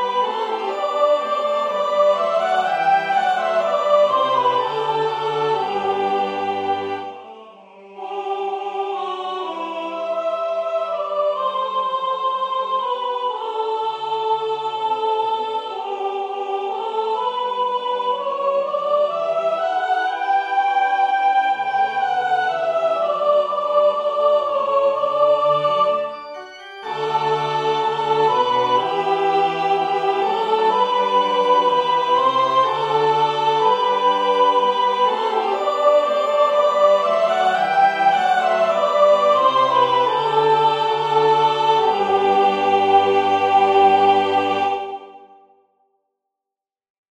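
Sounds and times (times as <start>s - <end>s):
sopranos singing a sacred choral piece: 0.0s - 45.4s.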